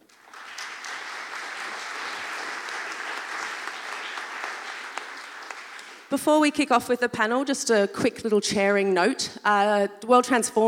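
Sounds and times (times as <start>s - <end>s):
audience applause welcoming panel speakers: 0.0s - 6.1s
speech: 6.1s - 10.6s.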